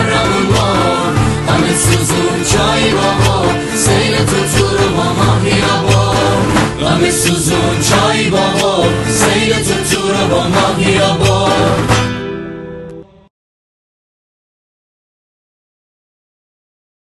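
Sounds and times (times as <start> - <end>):
guitar: 0.0 - 13.3.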